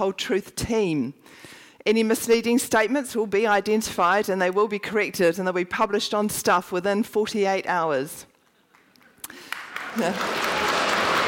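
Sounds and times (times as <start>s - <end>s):
speech: 0.0s - 8.3s, 9.3s - 10.7s
audience applause: 8.7s - 11.2s.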